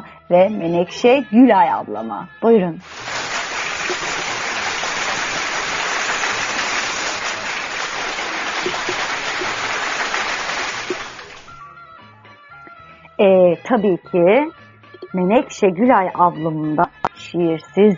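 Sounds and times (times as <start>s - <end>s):
speech: 0.3s - 3.2s, 13.2s - 17.9s
audience applause: 2.8s - 11.6s.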